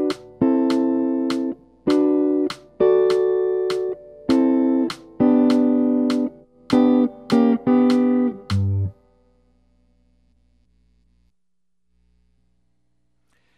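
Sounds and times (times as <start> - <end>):
jazz guitar: 0.0 - 9.0.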